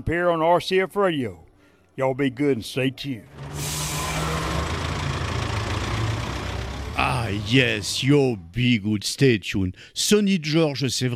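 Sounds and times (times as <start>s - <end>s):
speech: 0.0s - 1.4s, 2.0s - 3.8s, 7.3s - 11.1s
large old bus engine idling: 1.2s - 8.9s.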